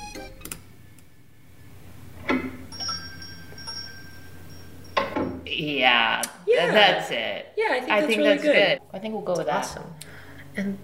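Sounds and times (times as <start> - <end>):
yogurt shop door sound effect: 2.2 - 2.8
speech: 5.6 - 10.0, 10.6 - 10.8.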